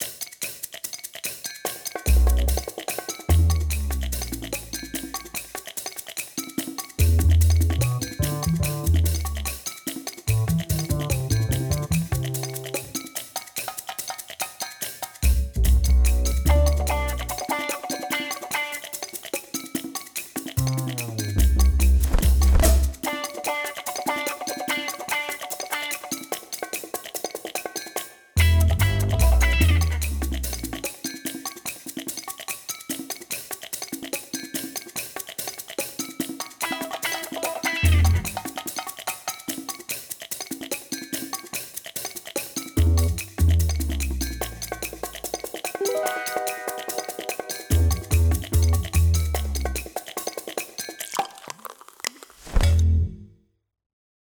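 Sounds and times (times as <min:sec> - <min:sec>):
drum and bass music: 0:02.0 - 0:13.2, 0:15.2 - 0:19.3, 0:20.3 - 0:26.0, 0:28.4 - 0:31.0, 0:36.6 - 0:38.6, 0:42.8 - 0:50.3.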